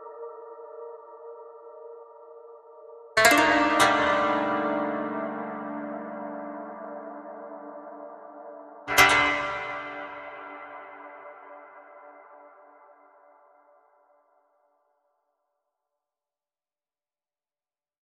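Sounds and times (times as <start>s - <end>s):
koto: 3.2s - 7.7s, 8.9s - 11.5s.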